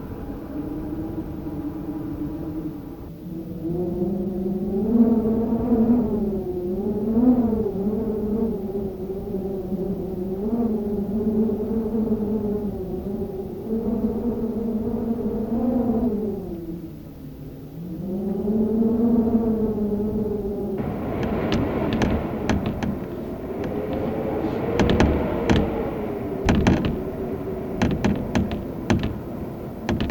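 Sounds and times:
medium howling wind: 0:00.0 - 0:30.0
shutters rattling in wind: 0:20.8 - 0:30.0.

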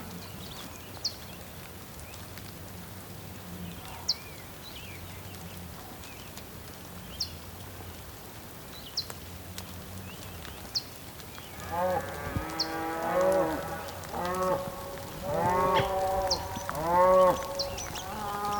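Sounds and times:
bull mooing on the Patagonian plain in rain: 0:11.6 - 0:18.5.

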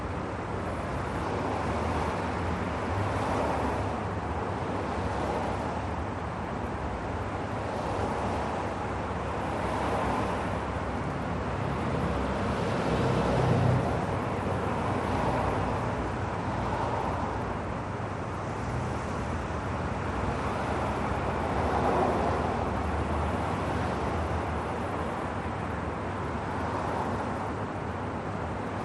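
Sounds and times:
city traffic: 0:00.0 - 0:28.8.

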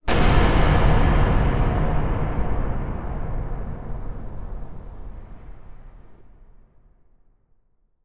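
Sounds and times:
large metal impact hit for horror cinema: 0:00.1 - 0:06.1.

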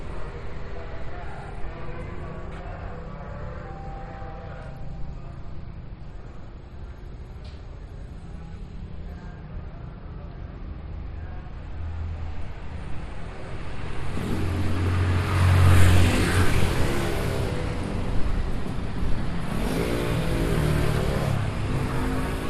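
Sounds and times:
people on urban street outside Kerobokan prison in Bali Indonesia: 0:00.0 - 0:12.1
urban street traffic outside Kerobokan prison in Bali Indonesia: 0:00.0 - 0:22.4.

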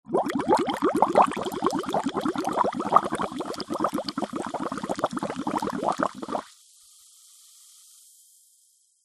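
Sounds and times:
blowing bubbles through a straw in soda: 0:00.0 - 0:06.5
soda fizzing in a glass: 0:00.1 - 0:06.5.

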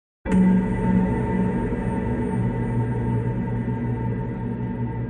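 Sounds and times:
horror hit stab thud with long reverb: 0:00.3 - 0:04.9.

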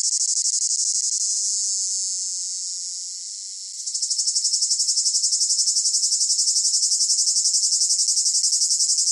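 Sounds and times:
cicada call: 0:00.0 - 0:09.1.

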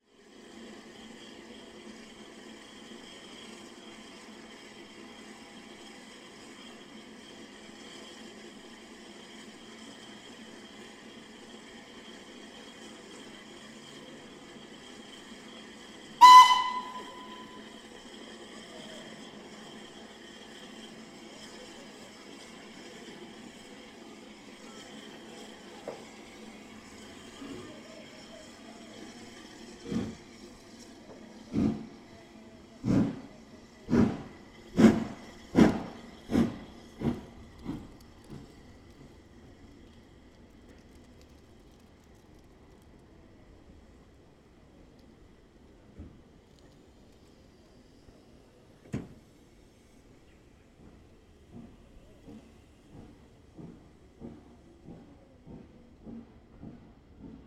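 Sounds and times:
steam train leaving station: 0:00.2 - 0:57.4
steam train whistle: 0:16.2 - 0:17.8.

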